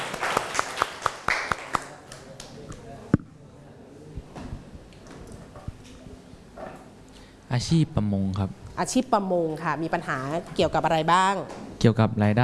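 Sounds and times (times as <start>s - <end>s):
classroom applause: 0.0s - 2.4s
speech: 7.6s - 12.4s.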